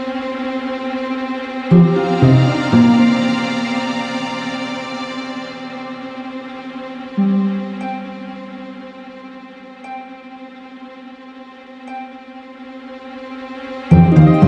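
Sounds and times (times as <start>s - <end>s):
tension music: 1.7s - 10.4s, 13.7s - 14.4s.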